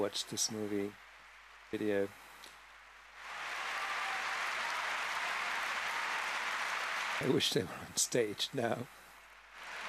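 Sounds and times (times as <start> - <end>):
speech: 0.0 - 1.0, 1.7 - 2.2, 7.2 - 9.0
audience applause: 3.2 - 7.8, 9.5 - 9.8.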